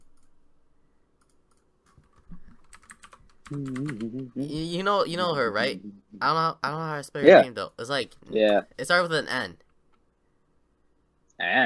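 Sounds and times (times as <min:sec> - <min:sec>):
computer keyboard typing: 0:01.2 - 0:04.5
speech: 0:03.5 - 0:09.6, 0:11.4 - 0:11.6.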